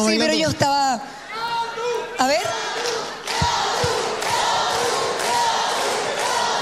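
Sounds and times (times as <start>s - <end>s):
speech: 0.0s - 3.1s
standing audience cheering and shouting at a live music and dance show: 1.3s - 6.6s.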